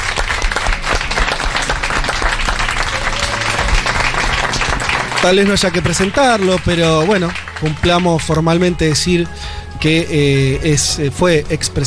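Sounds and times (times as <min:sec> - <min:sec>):
light crowd murmur: 0:00.0 - 0:08.0
live audience applause at a radio show's fourth-anniversary special: 0:00.0 - 0:08.7
speech: 0:05.2 - 0:11.8.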